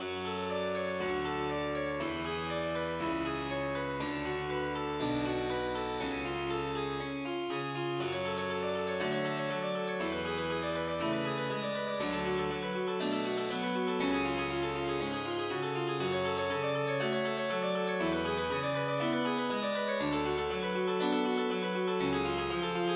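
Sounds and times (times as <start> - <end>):
MIDI harpsichord intro: 0.0 - 22.9.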